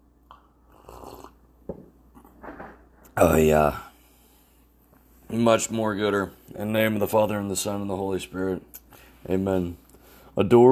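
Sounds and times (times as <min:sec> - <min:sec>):
quick sip of coffee: 0:00.7 - 0:01.4
speech: 0:03.2 - 0:03.9, 0:05.3 - 0:09.8, 0:10.4 - 0:10.6.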